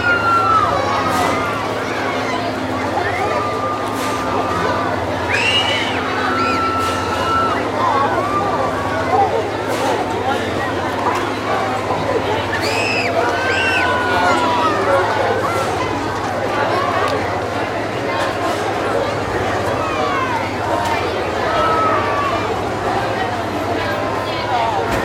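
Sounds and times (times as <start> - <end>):
carnival fair ambience: 0.0 - 25.0.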